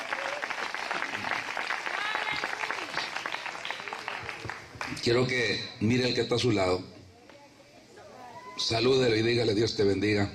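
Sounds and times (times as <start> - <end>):
audience applauding: 0.0 - 5.3
speech: 5.0 - 7.0, 8.7 - 10.3.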